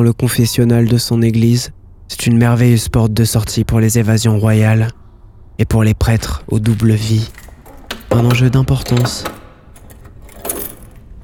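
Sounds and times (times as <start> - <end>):
speech: 0.0 - 5.0, 5.6 - 7.5, 8.1 - 9.4
keys jangling: 7.2 - 11.2.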